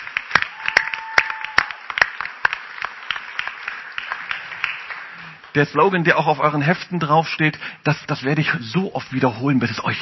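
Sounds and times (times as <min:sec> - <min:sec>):
several hands clapping: 0:00.0 - 0:05.8
speech: 0:05.5 - 0:10.0.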